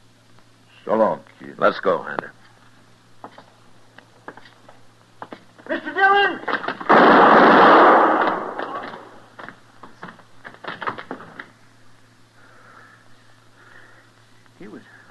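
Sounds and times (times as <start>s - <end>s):
low steady hum: 0.0s - 15.1s
speech: 0.8s - 2.4s
gunshot in a radio western drama: 6.9s - 9.2s.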